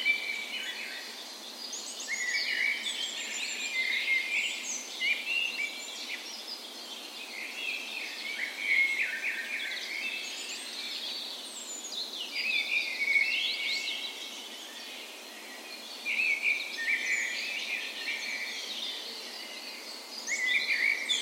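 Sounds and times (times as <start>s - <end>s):
dawn chorus of songbirds: 0.0s - 21.2s.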